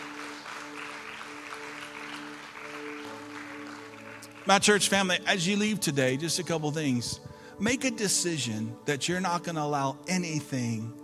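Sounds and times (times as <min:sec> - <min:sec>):
audience applause: 0:00.0 - 0:05.2
speech: 0:04.4 - 0:11.0.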